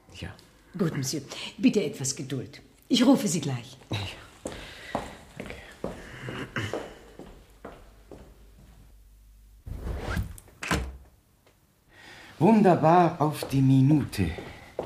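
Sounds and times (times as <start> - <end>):
speech: 0.2 - 4.6, 12.4 - 14.6
footsteps: 3.9 - 8.9, 13.3 - 14.8
soundproof door swinging shut: 10.1 - 11.0.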